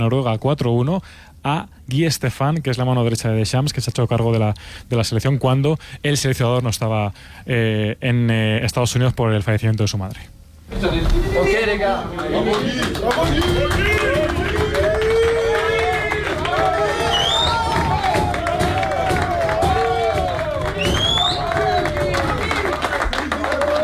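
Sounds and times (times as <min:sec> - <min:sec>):
speech: 0:00.0 - 0:14.0
footballers applauding in the locker room: 0:11.8 - 0:23.8.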